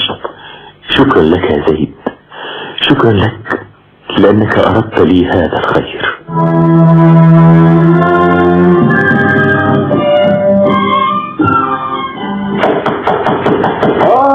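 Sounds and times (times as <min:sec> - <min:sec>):
speech: 0:01.0 - 0:02.0, 0:02.9 - 0:03.6, 0:04.2 - 0:08.3
musical drone: 0:06.2 - 0:12.6
knocking on a door: 0:12.6 - 0:14.2.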